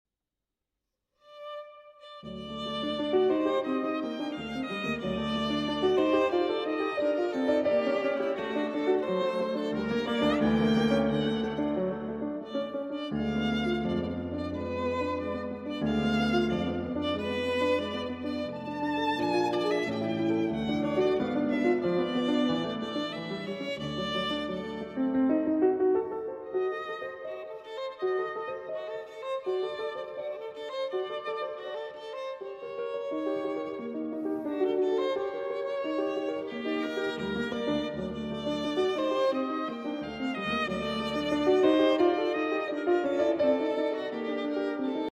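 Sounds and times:
violin sonata in G major: 1.2 - 45.0.

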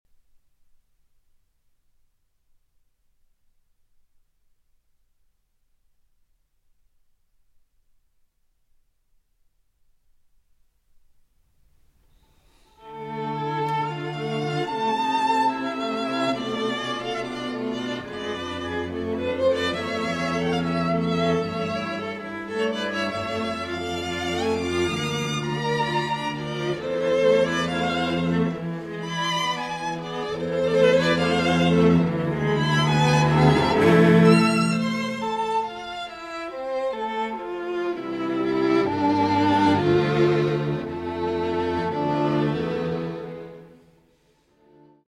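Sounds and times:
string quartet: 12.6 - 45.0.

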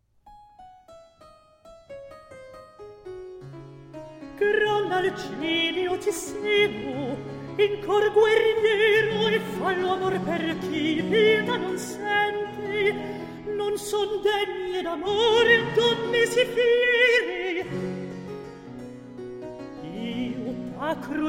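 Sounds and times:
recitative singing: 4.4 - 18.2, 19.8 - 21.2.

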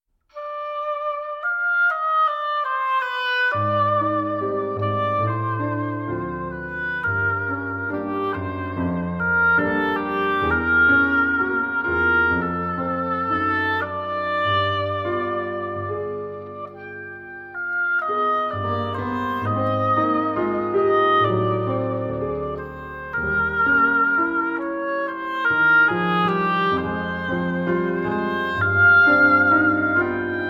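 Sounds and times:
piano: 0.2 - 30.4
oboe: 0.3 - 30.4.

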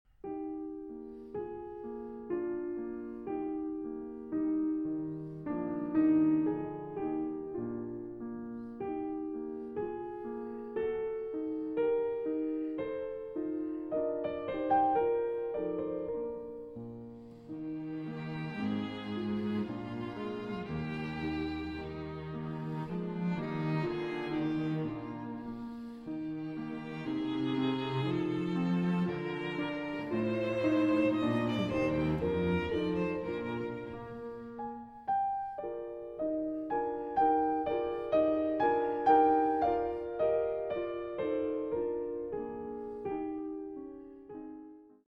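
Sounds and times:
piano trio in C minor: 0.2 - 45.0.

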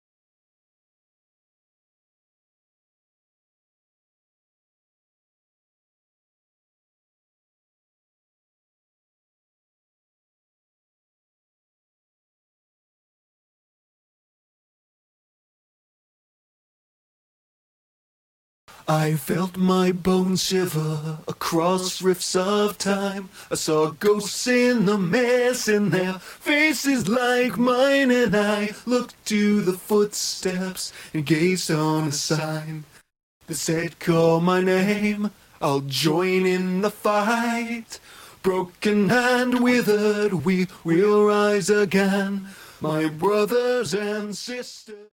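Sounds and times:
vocal stem: 18.7 - 45.1.

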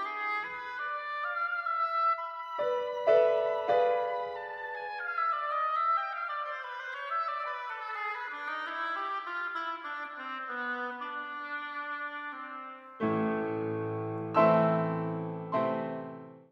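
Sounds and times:
oboe: 0.0 - 16.1
piano: 2.4 - 6.3, 11.0 - 16.5.

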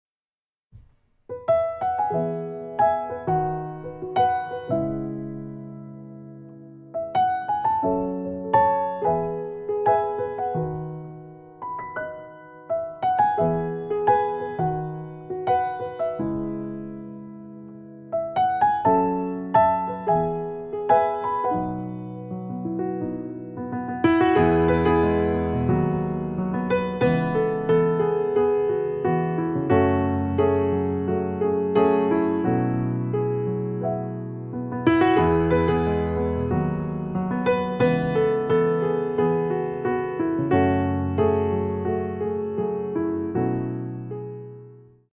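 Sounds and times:
piano music: 0.8 - 45.1.

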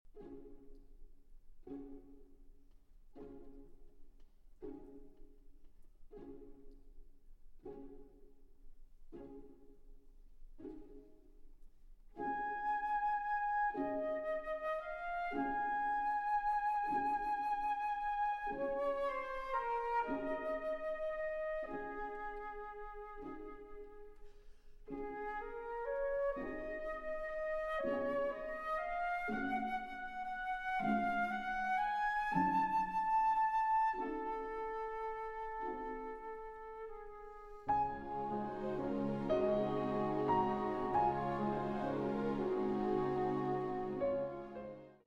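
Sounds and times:
piano concerto: 12.2 - 24.3, 24.9 - 45.0.

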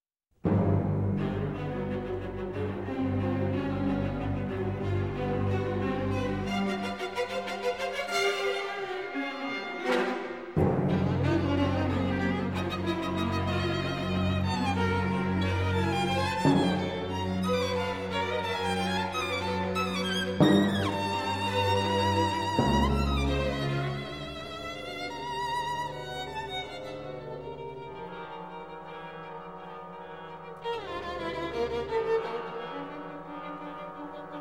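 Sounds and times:
orchestra: 0.4 - 34.3
violin: 0.4 - 34.3.

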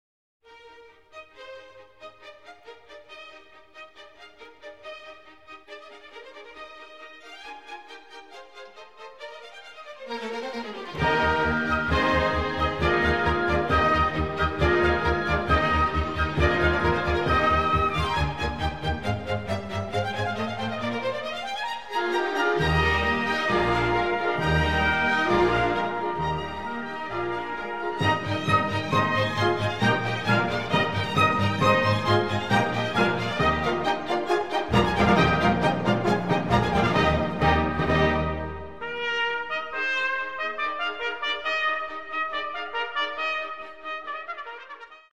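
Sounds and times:
trumpet concerto in E-flat major finale allegro: 10.1 - 45.1.

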